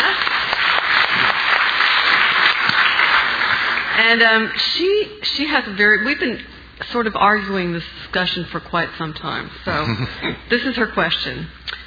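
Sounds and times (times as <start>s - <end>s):
audience applause: 0.0s - 4.1s
speech: 4.0s - 11.7s.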